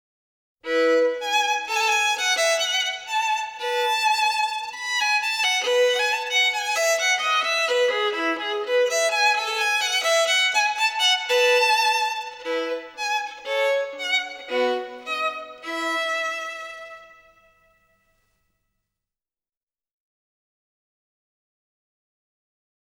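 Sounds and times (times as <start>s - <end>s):
solo violin gavotte in E major: 0.6s - 17.8s.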